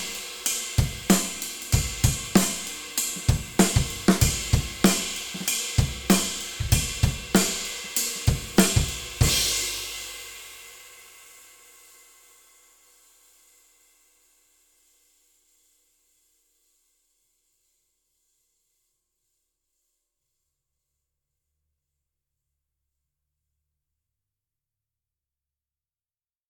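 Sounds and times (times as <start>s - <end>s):
ride cymbal: 0.0s - 14.0s.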